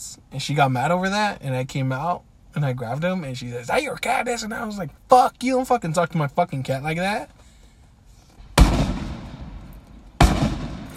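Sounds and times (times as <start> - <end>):
speech: 0.3 - 7.4
fireworks explosions: 8.6 - 10.9.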